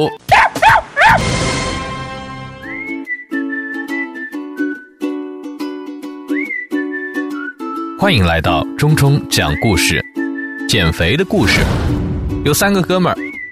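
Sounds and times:
speech: 0:00.0 - 0:00.4, 0:08.0 - 0:10.0, 0:10.7 - 0:13.3
dog barking: 0:00.3 - 0:01.3
bright whistled melody with steady backing rhythm: 0:02.1 - 0:11.3, 0:12.9 - 0:13.4.

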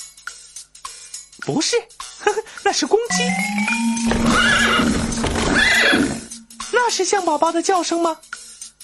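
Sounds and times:
speech: 0:01.5 - 0:05.0, 0:06.9 - 0:08.3
horse whinnying: 0:04.0 - 0:06.6.

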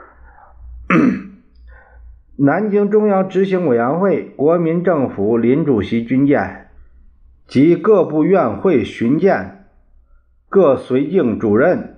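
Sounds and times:
speech: 0:00.9 - 0:01.3, 0:02.4 - 0:06.6, 0:07.5 - 0:09.6, 0:10.5 - 0:11.9
man coughing: 0:00.9 - 0:01.4.

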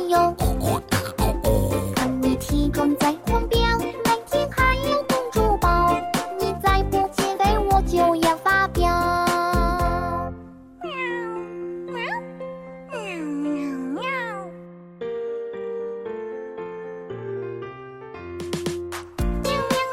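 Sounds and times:
musical backing: 0:00.0 - 0:19.9
voice imitating a cat meowing: 0:10.8 - 0:12.3, 0:12.9 - 0:14.7.

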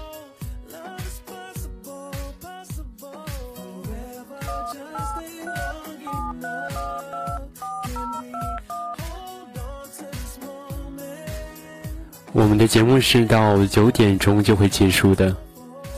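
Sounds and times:
telephone being dialed: 0:04.5 - 0:09.0
speech: 0:12.4 - 0:15.5.

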